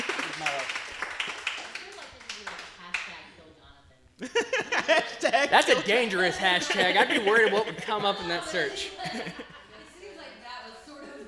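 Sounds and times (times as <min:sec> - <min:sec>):
laughter: 0:00.0 - 0:00.6, 0:04.2 - 0:10.3
audience clapping: 0:00.0 - 0:03.2
speech: 0:05.4 - 0:09.5.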